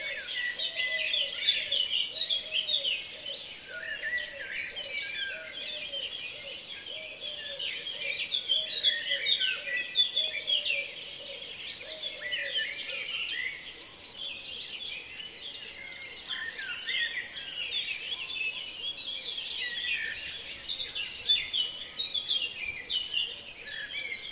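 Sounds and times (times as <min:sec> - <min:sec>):
birds in a dawn chorus: 0:00.0 - 0:24.2.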